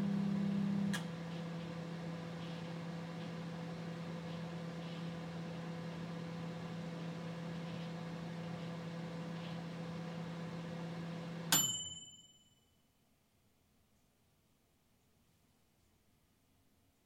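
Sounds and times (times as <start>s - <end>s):
LG microwave oven: 0.0s - 12.1s.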